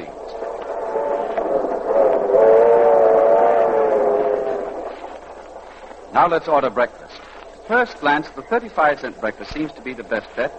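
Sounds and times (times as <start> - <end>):
moving passenger train rolling: 0.0 - 10.5
speech: 6.2 - 10.5.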